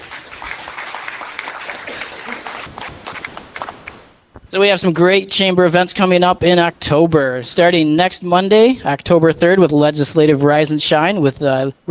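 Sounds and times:
audience clapping: 0.0 - 4.1
speech: 4.5 - 11.8.

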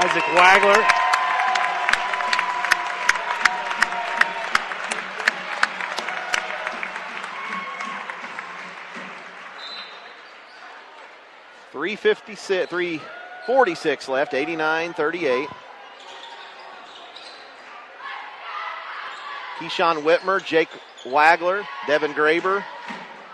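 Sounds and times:
speech: 0.0 - 1.1, 12.0 - 15.6, 19.6 - 22.7
crowd applause at basketball game: 0.0 - 10.1.

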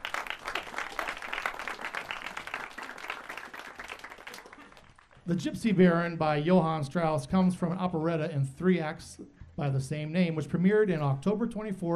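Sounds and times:
audience round of applause: 0.0 - 5.3
speech: 5.3 - 11.9.

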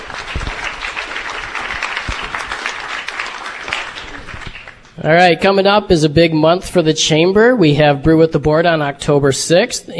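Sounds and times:
audience applause: 0.0 - 4.9
speech: 5.0 - 9.9.

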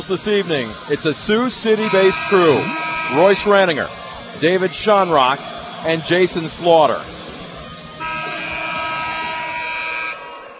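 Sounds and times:
speech: 0.1 - 7.2
basketball game buzzer blaring: 1.6 - 3.7, 7.9 - 10.4.

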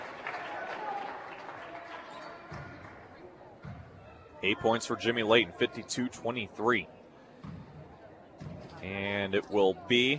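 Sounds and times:
crowd applause: 0.0 - 2.2
speech: 4.4 - 7.0, 8.9 - 10.1.

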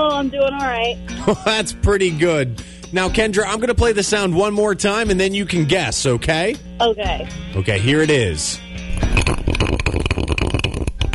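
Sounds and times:
speech: 0.0 - 9.4
ice ball spinning in a whiskey glass: 8.9 - 11.1.

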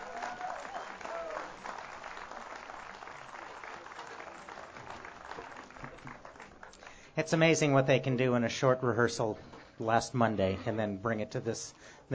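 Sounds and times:
faint cheer or whistle: 0.0 - 1.6
audience applause for the band: 0.0 - 7.1
speech: 7.2 - 12.1.

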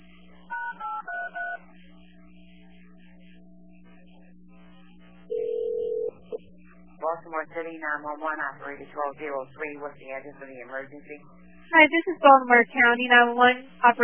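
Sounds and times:
quiet telephone line hum: 0.0 - 14.0
speech: 7.2 - 14.0.

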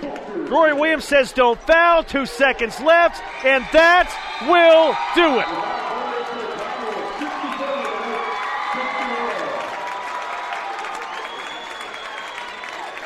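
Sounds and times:
Campbell County basketball fans clapping: 0.0 - 1.2, 4.1 - 13.0
speech: 0.5 - 5.7
Campbell County basketball fans shouting: 2.6 - 11.3.

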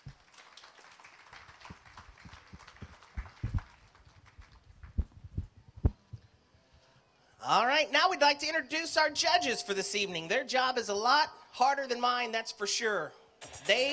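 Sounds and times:
audience applause: 0.0 - 5.0
speech: 7.4 - 13.9.

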